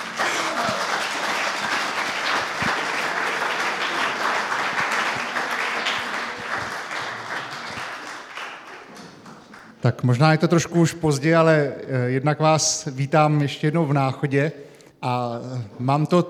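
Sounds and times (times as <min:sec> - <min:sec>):
audience applause: 0:00.0 - 0:09.8
speech: 0:09.8 - 0:16.2.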